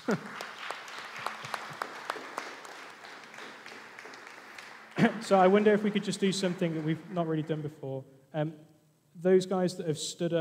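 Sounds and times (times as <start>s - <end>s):
audience applause: 0.0s - 7.7s
speech: 0.1s - 0.4s, 5.0s - 10.4s.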